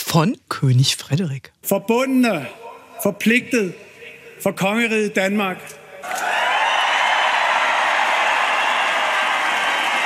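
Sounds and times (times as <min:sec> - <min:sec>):
speech: 0:00.1 - 0:06.3
large crowd cheering: 0:06.0 - 0:10.0.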